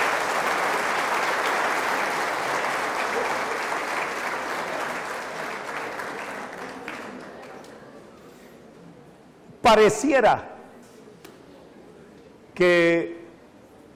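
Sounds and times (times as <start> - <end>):
audience applause: 0.0 - 7.7
speech: 9.7 - 10.5, 12.6 - 13.2.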